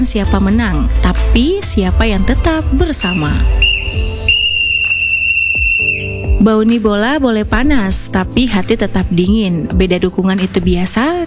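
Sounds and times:
speech: 0:00.0 - 0:04.3, 0:06.4 - 0:11.2
brief thumps: 0:03.0 - 0:06.4
referee's whistle blowing: 0:03.0 - 0:06.4.

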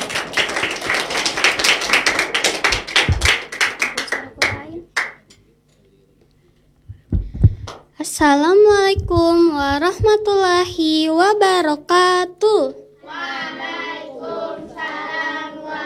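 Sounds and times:
audience applause: 0:00.0 - 0:05.2
dull thumps: 0:03.0 - 0:03.4, 0:06.9 - 0:11.0
speech: 0:08.2 - 0:12.8.

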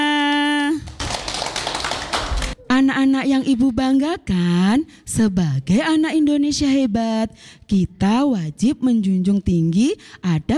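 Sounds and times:
group of children clapping at a school gathering: 0:00.8 - 0:02.6
speech: 0:03.0 - 0:10.5.

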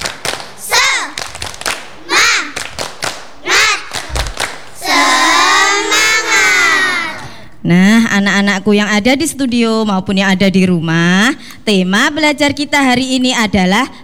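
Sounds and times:
children doing rhythmic clapping: 0:00.0 - 0:07.6
speech: 0:07.7 - 0:14.0.

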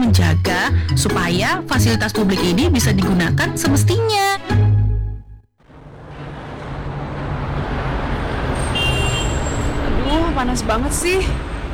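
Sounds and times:
speech: 0:00.1 - 0:04.6, 0:10.4 - 0:11.5
congested street traffic: 0:05.6 - 0:11.7.

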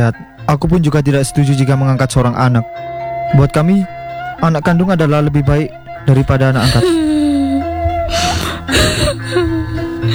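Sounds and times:
speech: 0:00.0 - 0:07.1
woman crying: 0:06.1 - 0:10.1.

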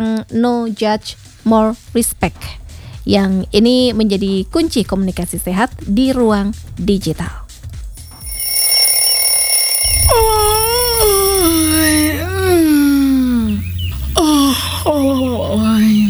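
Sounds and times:
speech: 0:00.0 - 0:07.4
low steady hum: 0:00.0 - 0:16.0
person yawning: 0:09.9 - 0:13.6, 0:14.2 - 0:16.0.

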